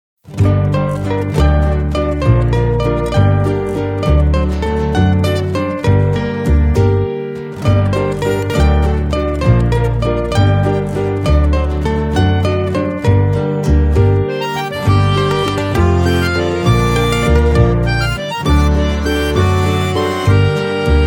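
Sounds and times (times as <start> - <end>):
Latin American music track: 0.5 - 21.0.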